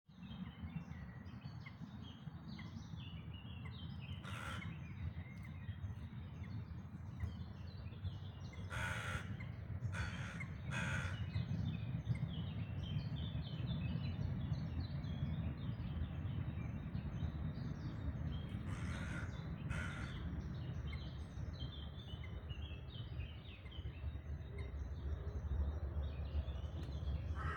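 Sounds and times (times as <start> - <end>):
dawn chorus of birds singing before sunrise: 0.1 - 27.5.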